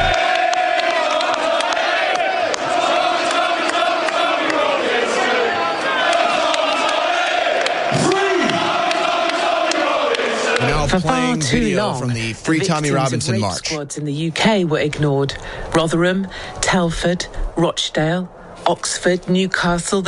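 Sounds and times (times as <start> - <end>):
large crowd shouting at a rally: 0.0 - 12.0
speech: 10.9 - 20.0.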